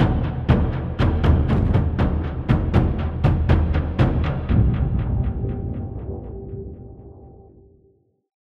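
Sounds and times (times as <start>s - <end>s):
NPC combat tom rhythm: 0.0s - 6.1s.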